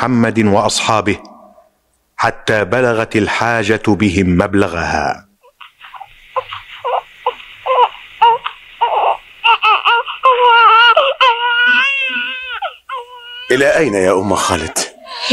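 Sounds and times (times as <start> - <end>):
speech: 0.0 - 1.3, 2.2 - 5.3, 13.5 - 15.3
baby crying with sobs and high-pitched wails: 5.4 - 15.3.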